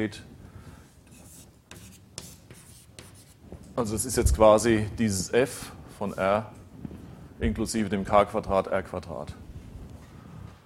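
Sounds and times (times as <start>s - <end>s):
speech: 0.0s - 0.3s, 3.8s - 6.6s, 7.4s - 9.4s
handwriting copying out a formula: 1.1s - 3.4s.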